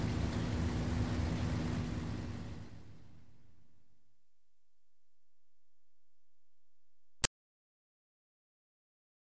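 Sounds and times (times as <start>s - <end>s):
aircraft descending and landing: 0.0s - 7.3s.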